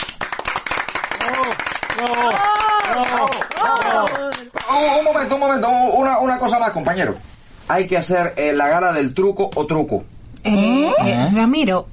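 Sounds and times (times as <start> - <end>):
loud applause: 0.0 - 4.8
people cheering and whooping: 1.2 - 4.5
speech: 1.3 - 11.9.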